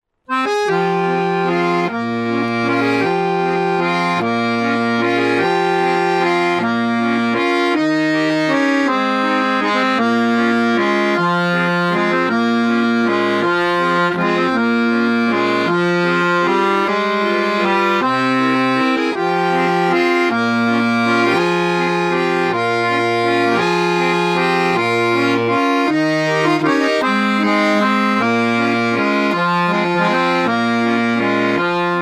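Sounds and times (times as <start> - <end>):
accordion: 0.2 - 32.0.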